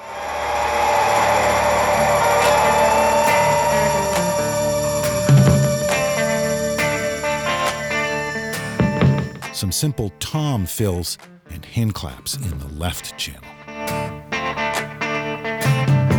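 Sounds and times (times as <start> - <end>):
rock guitar riff in song recording: 0.0 - 10.2, 13.5 - 16.1
speech: 9.7 - 13.6.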